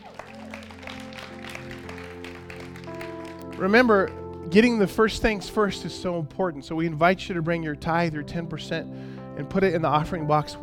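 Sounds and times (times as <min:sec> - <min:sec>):
audience applause: 0:00.0 - 0:04.2
speech: 0:03.6 - 0:10.6.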